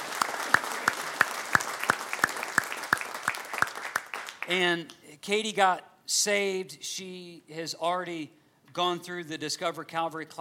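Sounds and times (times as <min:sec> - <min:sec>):
audience clapping: 0:00.0 - 0:04.7
speech: 0:04.5 - 0:10.4.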